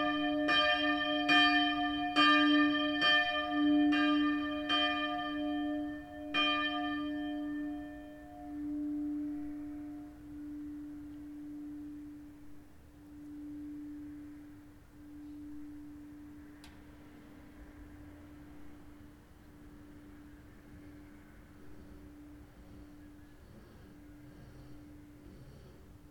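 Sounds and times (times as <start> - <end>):
church bells of St. Mariae Geburt in D ringing: 0.0 - 16.4, 17.8 - 25.1.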